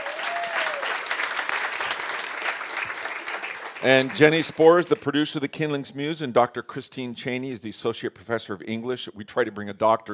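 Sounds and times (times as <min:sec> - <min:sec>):
audience applause: 0:00.0 - 0:05.1
speech: 0:03.8 - 0:10.1.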